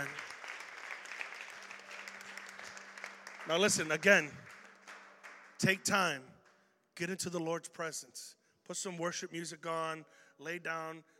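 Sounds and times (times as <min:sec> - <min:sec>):
crowd clapping: 0:00.0 - 0:06.6
speech: 0:03.5 - 0:04.5, 0:05.6 - 0:06.4, 0:07.0 - 0:11.1.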